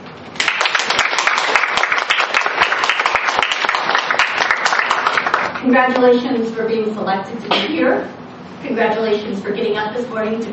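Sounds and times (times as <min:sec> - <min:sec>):
audience applause: 0:00.4 - 0:05.6
speech: 0:05.6 - 0:10.5.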